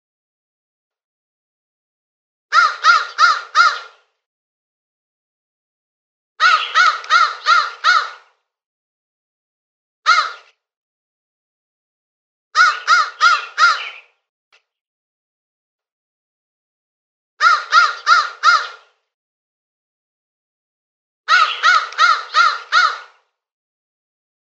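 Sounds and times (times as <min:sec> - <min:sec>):
crow cawing: 0:02.5 - 0:04.1, 0:06.4 - 0:08.4, 0:10.1 - 0:10.5, 0:12.6 - 0:14.1, 0:17.4 - 0:19.0, 0:21.3 - 0:23.3.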